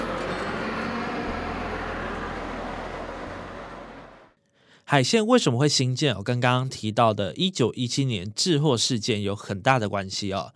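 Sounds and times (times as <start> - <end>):
train arriving at station: 0.0 - 4.4
speech: 4.9 - 10.5.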